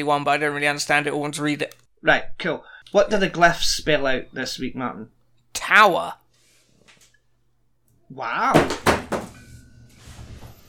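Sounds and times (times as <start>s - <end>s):
speech: 0.0s - 6.2s, 8.1s - 8.9s
phone falling on the floor: 8.6s - 9.5s.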